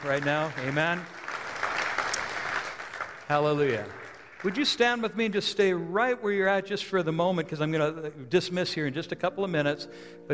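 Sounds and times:
speech: 0:00.0 - 0:01.7, 0:03.3 - 0:10.3
audience hand clapping: 0:00.0 - 0:05.4.

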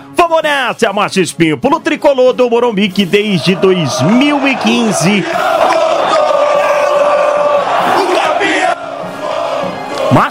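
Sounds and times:
speech: 0:00.3 - 0:05.8
São Paulo football fans chanting: 0:03.4 - 0:10.3.

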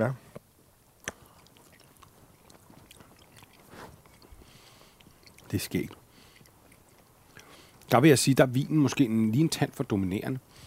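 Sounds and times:
speech: 0:00.0 - 0:00.2, 0:05.5 - 0:06.0, 0:07.9 - 0:10.6
biting and chewing salami: 0:00.8 - 0:07.9.

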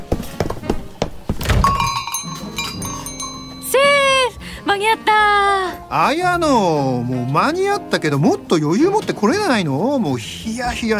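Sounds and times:
footsteps of someone running up: 0:00.0 - 0:03.4
speech: 0:04.8 - 0:10.9.

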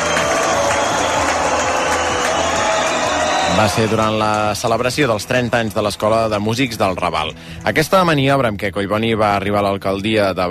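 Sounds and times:
large crowd applauding: 0:00.0 - 0:08.2
speech: 0:03.6 - 0:10.4.

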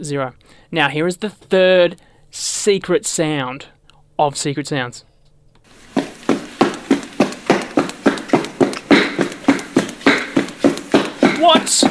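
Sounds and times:
speech: 0:00.0 - 0:05.1, 0:11.4 - 0:11.8
running footsteps: 0:05.7 - 0:11.8.

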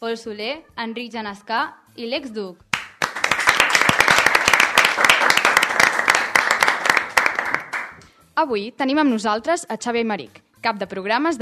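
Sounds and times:
speech: 0:00.0 - 0:02.7, 0:08.4 - 0:11.3
loud applause from studio audience: 0:02.7 - 0:08.0.

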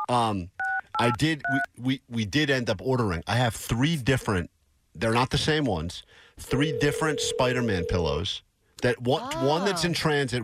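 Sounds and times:
speech: 0:00.1 - 0:10.4
touch-tone beeps from a phone keypad being dialed: 0:06.5 - 0:08.0.

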